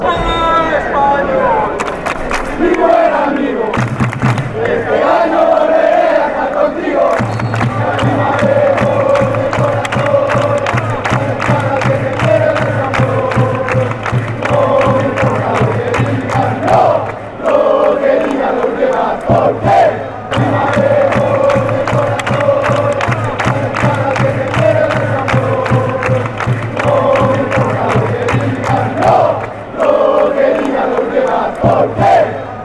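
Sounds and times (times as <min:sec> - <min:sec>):
fans chanting: 0:00.0 - 0:32.6.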